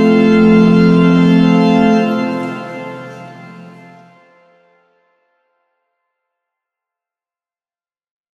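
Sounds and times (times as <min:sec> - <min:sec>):
Cistercian organs playing: 0:00.0 - 0:04.2.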